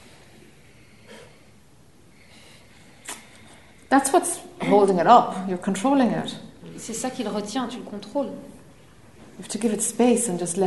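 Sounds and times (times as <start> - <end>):
deep breath: 0.6 - 3.9
speech: 3.9 - 8.6, 9.4 - 10.6.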